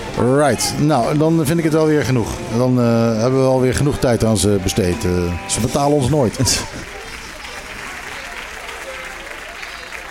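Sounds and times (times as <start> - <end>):
speech: 0.2 - 6.9
applause: 6.2 - 10.1
laughter: 6.3 - 10.1.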